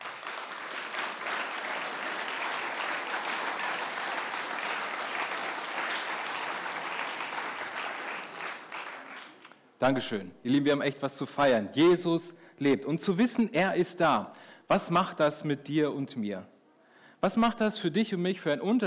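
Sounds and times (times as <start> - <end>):
audience applause: 0.0 - 9.5
speech: 9.8 - 16.6, 17.2 - 18.8.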